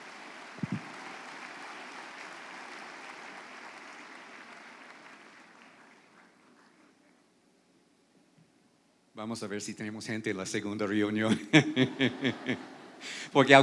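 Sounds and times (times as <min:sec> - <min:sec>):
crowd applause: 0:00.0 - 0:06.8
speech: 0:09.2 - 0:13.6
laughter: 0:11.2 - 0:13.0.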